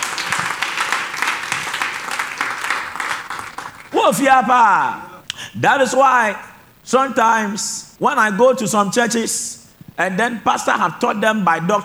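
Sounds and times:
audience clapping: 0:00.0 - 0:04.0
man speaking loudly: 0:03.9 - 0:11.8
speech: 0:04.0 - 0:11.8.

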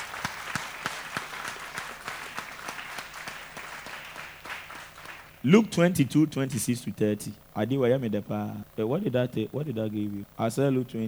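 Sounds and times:
audience clapping: 0:00.0 - 0:05.4
speech: 0:05.4 - 0:11.0.

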